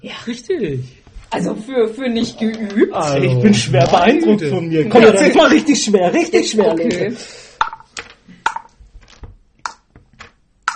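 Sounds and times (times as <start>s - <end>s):
speech: 0.0s - 7.5s
dice dropped into a cup: 7.6s - 10.7s.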